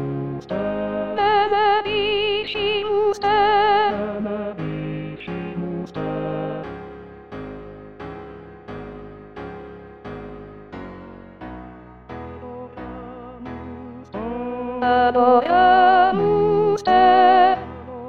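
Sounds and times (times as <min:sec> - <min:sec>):
soprano singing: 0:00.0 - 0:06.8, 0:12.3 - 0:18.0.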